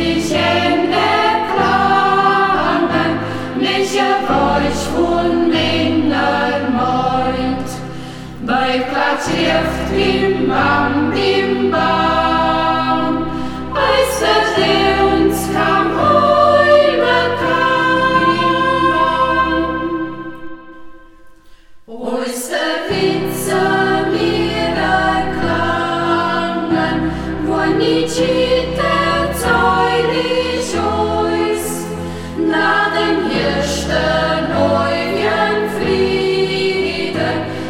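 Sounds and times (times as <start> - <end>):
choir singing in local dialect: 0.0 - 37.6.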